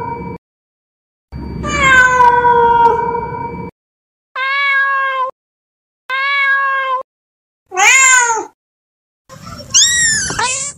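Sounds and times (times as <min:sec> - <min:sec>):
male cat yowling calling for a mate: 0:01.6 - 0:03.2, 0:04.4 - 0:05.3, 0:06.1 - 0:07.0, 0:07.7 - 0:08.6, 0:09.7 - 0:10.7.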